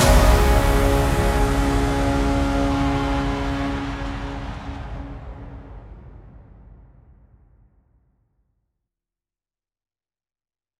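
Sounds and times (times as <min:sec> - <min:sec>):
synthwave music: 0:00.0 - 0:06.1.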